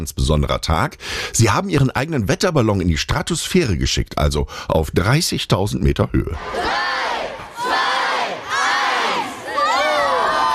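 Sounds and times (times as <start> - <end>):
speech: 0.0 - 7.8
schoolchildren cheering and shouting: 6.4 - 10.5.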